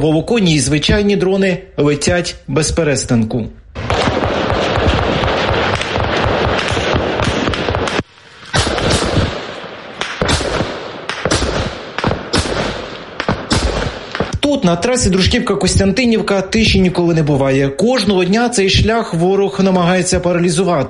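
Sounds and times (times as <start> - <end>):
speech: 0.0 - 3.6, 14.6 - 20.8
explosions from guided aerial bombs: 3.8 - 16.9.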